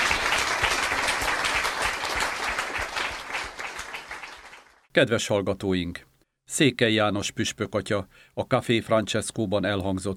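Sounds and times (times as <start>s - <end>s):
sustained audience applause: 0.0s - 4.8s
speech: 5.0s - 10.1s.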